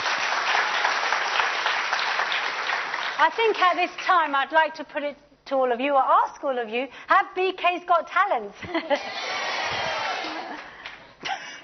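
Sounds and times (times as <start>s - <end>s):
audience applause: 0.0s - 3.7s, 9.4s - 11.1s
speech: 3.2s - 9.9s.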